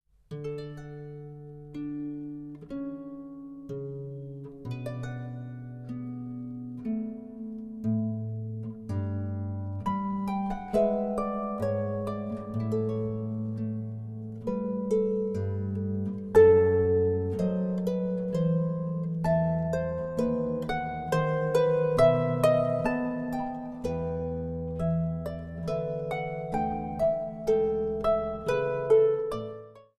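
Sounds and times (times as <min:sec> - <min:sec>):
harp playing an air: 0:00.3 - 0:29.9.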